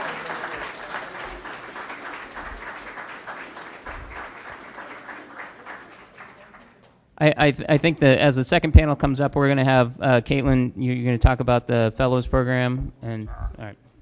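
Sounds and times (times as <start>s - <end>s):
audience applause: 0.0s - 6.9s
speech: 7.2s - 13.8s.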